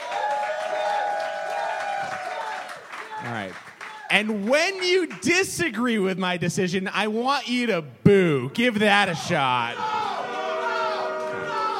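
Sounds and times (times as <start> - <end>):
audience cheering: 0.0 - 5.4, 9.4 - 11.7
speech: 3.2 - 10.0.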